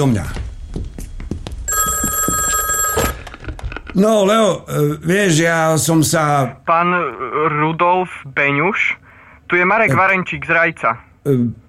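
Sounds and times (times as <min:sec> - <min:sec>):
speech: 0:00.0 - 0:00.4, 0:04.0 - 0:11.6
telephone bell ringing with a bright metallic trill: 0:01.7 - 0:03.3.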